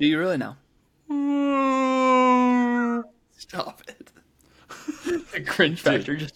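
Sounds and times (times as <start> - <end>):
speech: 0.0 - 1.4, 3.4 - 6.3
person imitating whale call: 1.1 - 3.2.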